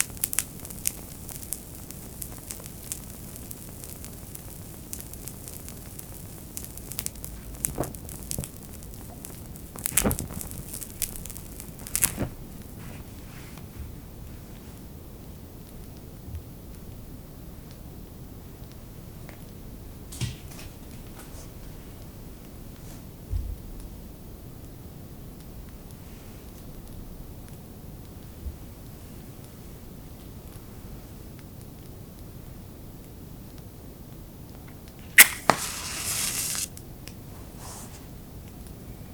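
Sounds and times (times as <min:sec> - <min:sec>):
low steady rumbling hiss: 0:00.0 - 0:39.1.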